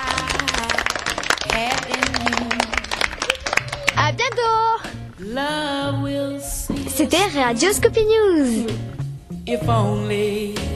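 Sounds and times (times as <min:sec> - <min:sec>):
people clapping: 0:00.0 - 0:04.8
speech: 0:04.1 - 0:08.9, 0:09.5 - 0:10.7.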